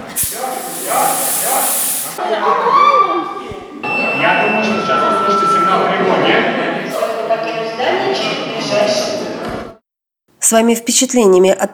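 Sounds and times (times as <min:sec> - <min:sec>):
theatrical smoke machine spraying: 0:00.0 - 0:02.2
speech: 0:02.3 - 0:02.8, 0:10.5 - 0:11.7
voices murmuring: 0:03.8 - 0:09.4.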